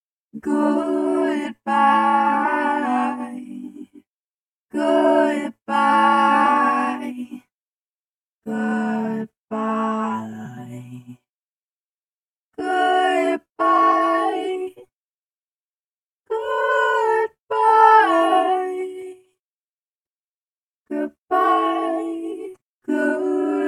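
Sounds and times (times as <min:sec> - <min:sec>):
choir singing goodbyes: 0:00.4 - 0:04.0, 0:04.7 - 0:07.4, 0:08.5 - 0:11.1, 0:12.6 - 0:14.9, 0:16.3 - 0:19.2, 0:20.9 - 0:23.6.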